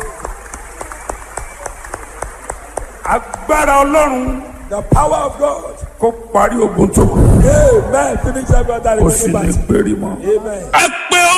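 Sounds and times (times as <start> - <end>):
audience clapping: 0.0 - 4.3
speech: 3.1 - 11.0.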